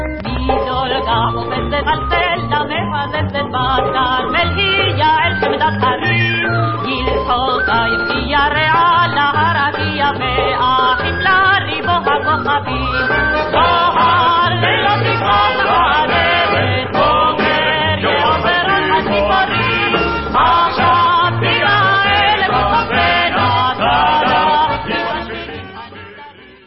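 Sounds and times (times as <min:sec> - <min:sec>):
vocals: 0:00.2 - 0:26.6.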